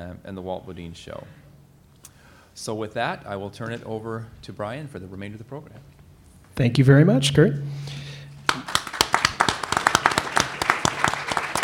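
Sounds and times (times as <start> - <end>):
speech: 0.1 - 1.4, 2.6 - 5.9, 6.6 - 8.0
low hum: 6.9 - 9.0
audience applause: 8.4 - 11.6.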